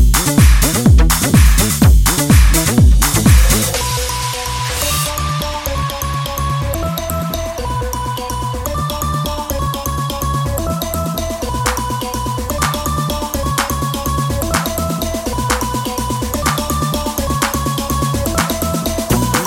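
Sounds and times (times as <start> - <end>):
bass line: 0.0 - 19.4.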